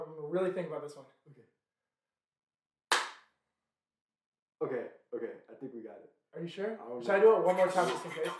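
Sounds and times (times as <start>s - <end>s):
speech: 0.3s - 1.2s, 4.6s - 8.3s
single hand clap: 2.9s - 3.3s.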